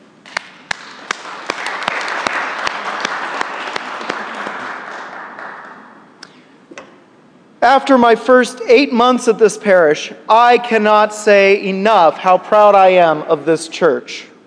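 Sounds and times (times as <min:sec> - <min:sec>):
audience applause: 0:00.7 - 0:06.0
speech: 0:07.6 - 0:14.3.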